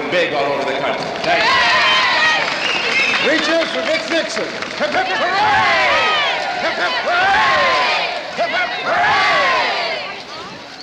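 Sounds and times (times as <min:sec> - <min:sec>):
speech: 0:00.1 - 0:01.8, 0:03.2 - 0:09.8
large crowd roaring and cheering at a political rally: 0:00.4 - 0:10.8
people shouting: 0:01.2 - 0:03.6, 0:04.8 - 0:10.4.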